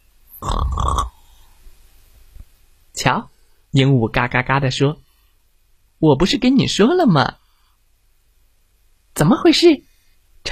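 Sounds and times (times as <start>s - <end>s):
sleeping hippo snoring: 0.4s - 1.3s
speech: 3.0s - 5.0s, 6.0s - 7.4s, 9.2s - 10.5s.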